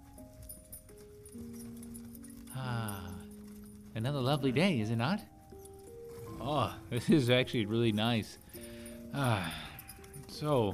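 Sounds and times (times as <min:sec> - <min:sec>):
horse hoofbeats pulling a covered wagon on a rocky country road: 0:00.0 - 0:10.7
sustained musical tones: 0:00.0 - 0:10.7
speech: 0:04.0 - 0:05.3, 0:06.4 - 0:09.6, 0:10.3 - 0:10.7.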